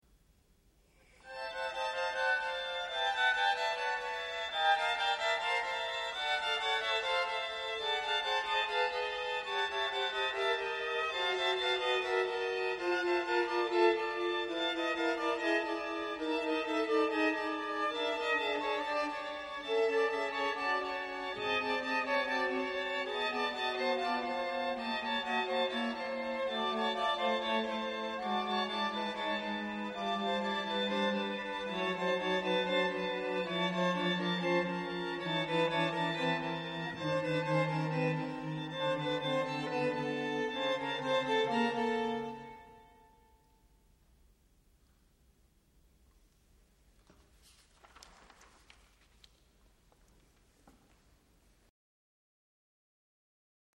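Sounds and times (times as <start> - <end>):
string quartet: 1.0 - 43.5.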